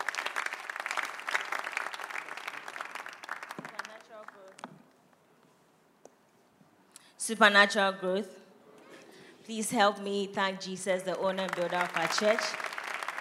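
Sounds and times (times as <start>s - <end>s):
audience clapping: 0.0s - 4.8s, 11.3s - 13.1s
speech: 7.2s - 8.4s, 9.5s - 12.7s.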